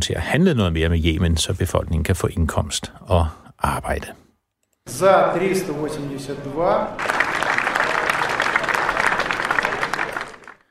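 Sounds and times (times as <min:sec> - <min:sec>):
speech: 0:00.0 - 0:04.2, 0:04.9 - 0:07.2
members of parliament in Russia applauding: 0:06.9 - 0:10.6.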